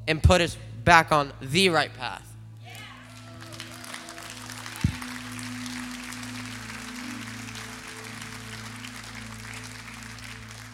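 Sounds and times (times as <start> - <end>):
speech: 0.1 - 2.3
audience clapping: 2.8 - 10.7.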